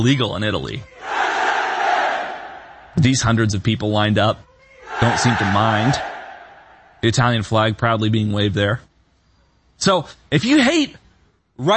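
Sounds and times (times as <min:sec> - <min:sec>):
speech: 0:00.0 - 0:01.1, 0:03.0 - 0:06.1, 0:07.0 - 0:08.9, 0:09.8 - 0:11.0, 0:11.6 - 0:11.7
crowd shouting in unison: 0:00.9 - 0:03.0, 0:04.7 - 0:07.0.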